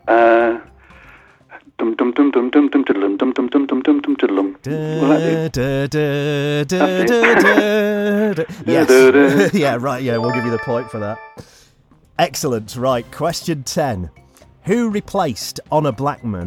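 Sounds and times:
speech: 1.8s - 11.6s, 12.2s - 16.4s
person humming a 1965 television theme tune: 4.7s - 9.1s
laughter: 4.7s - 10.4s.

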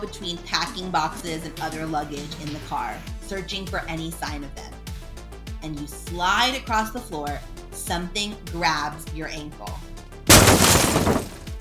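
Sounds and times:
speech: 0.0s - 4.8s, 5.6s - 9.9s
large rectangular mirror wrapped in plastic falling to the floor: 10.3s - 11.5s.

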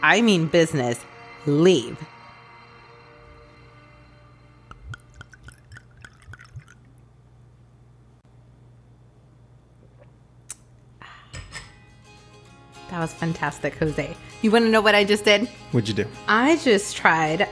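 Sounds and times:
speech: 0.0s - 2.2s, 13.0s - 17.5s
bottle of wine being opened: 4.7s - 6.9s.

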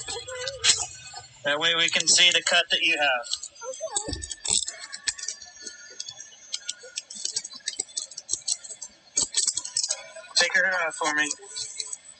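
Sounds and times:
speech: 1.4s - 3.4s, 10.6s - 11.7s
handcuffs being unlocked and removed: 3.2s - 10.0s, 11.2s - 12.1s.

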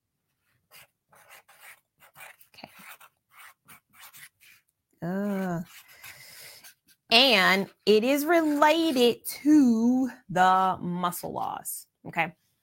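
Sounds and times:
pen strokes writing notes by hand: 0.4s - 9.2s
speech: 5.0s - 5.8s, 7.1s - 12.4s.

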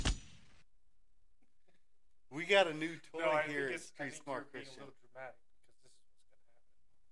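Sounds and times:
gunshot sound effect: 0.0s - 0.5s
speech: 2.5s - 5.4s.

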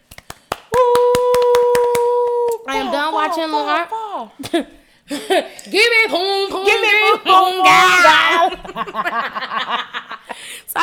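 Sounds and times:
hand clapping: 0.0s - 3.0s
speech: 3.3s - 10.8s
laughter: 7.3s - 10.4s.

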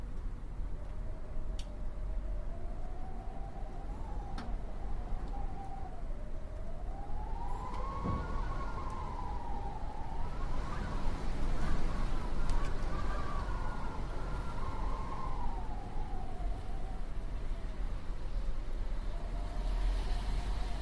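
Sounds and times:
faint clicks: 0.1s - 1.8s
wind blowing: 0.5s - 20.8s
wavering whistle: 1.1s - 17.1s.

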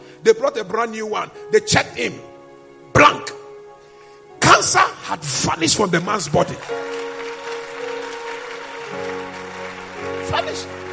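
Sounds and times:
sustained keyboard chords: 0.0s - 10.9s
speech: 0.2s - 2.3s, 4.6s - 7.0s
audience clapping: 5.8s - 10.9s.

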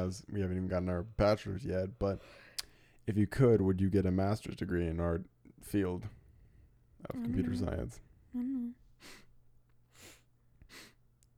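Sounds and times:
speech: 0.0s - 2.5s, 3.1s - 6.2s, 7.0s - 9.2s
hard sniff: 9.9s - 11.0s.

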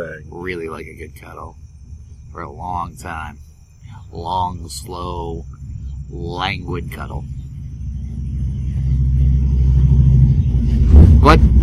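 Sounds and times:
speech: 0.0s - 1.6s, 2.3s - 3.5s, 4.1s - 7.4s, 11.2s - 11.6s
motorcycles driving past: 4.7s - 11.6s.

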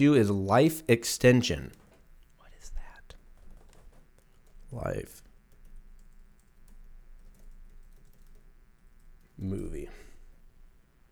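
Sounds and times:
speech: 0.0s - 1.8s, 4.7s - 5.2s, 9.4s - 10.0s
typing on a computer keyboard: 1.6s - 9.9s.

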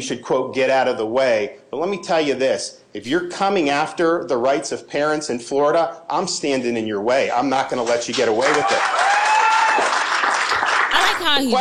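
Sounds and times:
speech: 0.0s - 9.2s, 11.2s - 11.5s
audience applause: 8.2s - 11.5s.

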